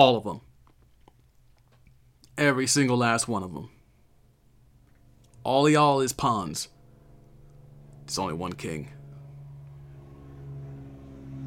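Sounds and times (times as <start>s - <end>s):
speech: 0.0s - 0.5s, 2.4s - 3.8s, 5.4s - 6.8s, 8.1s - 9.0s
plane engine droning overhead: 4.2s - 11.4s.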